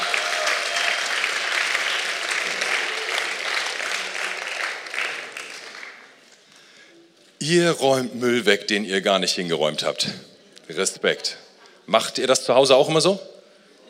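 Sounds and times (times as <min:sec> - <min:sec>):
audience applause: 0:00.0 - 0:06.2
speech: 0:07.4 - 0:13.3.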